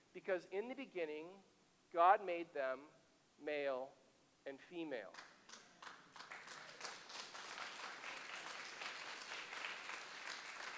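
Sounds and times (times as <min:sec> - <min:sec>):
speech: 0:00.2 - 0:05.3
audience clapping: 0:05.1 - 0:10.7.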